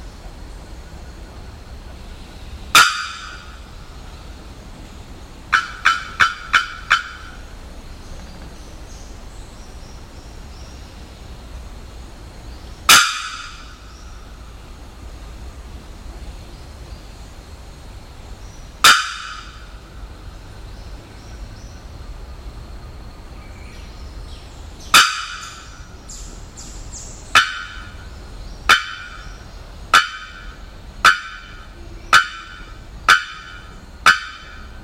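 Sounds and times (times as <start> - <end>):
Bearded Bellbird calling: 2.7 - 4.3, 5.5 - 7.6, 12.9 - 14.5, 18.8 - 20.0, 24.9 - 34.8.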